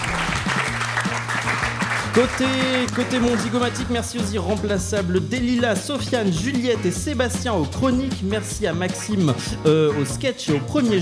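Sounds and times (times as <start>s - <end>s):
audience applause: 0.0s - 3.9s
speech: 2.2s - 11.0s.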